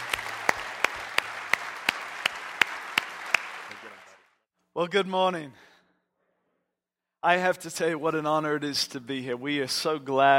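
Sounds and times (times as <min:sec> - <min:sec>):
loud sharp claps at a regular beat: 0:00.0 - 0:04.2
audience applause welcoming a pastor: 0:00.0 - 0:04.3
speech: 0:04.8 - 0:05.7, 0:07.2 - 0:10.3.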